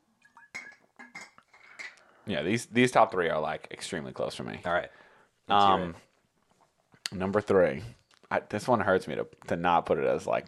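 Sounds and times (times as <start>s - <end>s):
glass clinking while getting water: 0.2s - 2.0s
speech: 2.3s - 6.1s, 7.1s - 10.4s.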